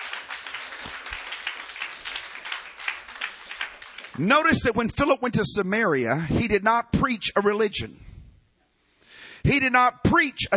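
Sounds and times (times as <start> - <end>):
audience clapping: 0.0 - 4.8
speech: 4.2 - 8.1, 9.4 - 10.5.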